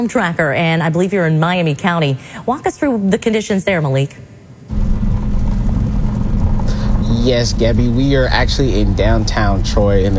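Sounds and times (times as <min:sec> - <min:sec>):
speech: 0:00.0 - 0:04.3, 0:07.2 - 0:10.1
cars going around a roundabout in the main square of downtown Troy: 0:04.7 - 0:10.1.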